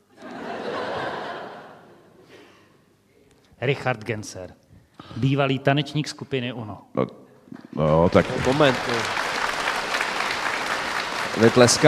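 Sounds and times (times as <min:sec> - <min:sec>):
laughter: 0:00.1 - 0:02.3
speech: 0:03.6 - 0:07.2, 0:07.8 - 0:09.2, 0:11.4 - 0:11.8
audience applause: 0:07.9 - 0:11.8.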